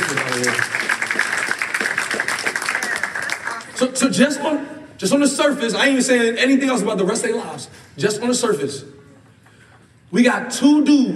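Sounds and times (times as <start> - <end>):
church audience clapping: 0.0 - 3.8
speech: 3.8 - 8.9, 10.1 - 11.1.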